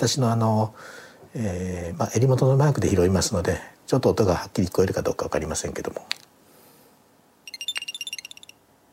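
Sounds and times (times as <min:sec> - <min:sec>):
speech: 0:00.0 - 0:06.3
battery-powered electronic gadget power-on chime: 0:07.5 - 0:08.6.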